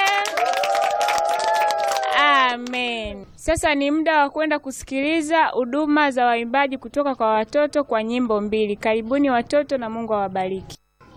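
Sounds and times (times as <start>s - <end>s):
church congregation ululating: 0.0s - 2.5s
church congregation clapping: 0.0s - 2.8s
speech: 2.5s - 11.1s.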